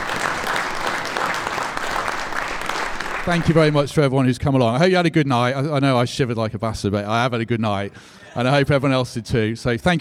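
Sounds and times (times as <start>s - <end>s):
crowd applause: 0.0s - 3.9s
speech: 3.2s - 9.9s.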